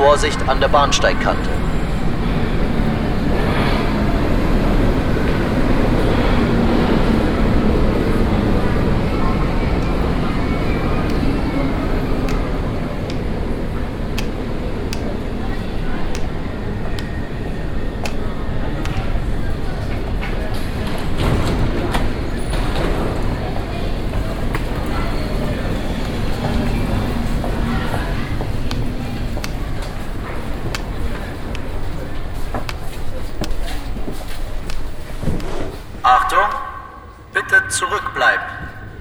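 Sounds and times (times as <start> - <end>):
speech: 0.0 - 1.7
U2 subway train arriving at platform 2 of a Munich U-Bahn station: 0.0 - 38.9.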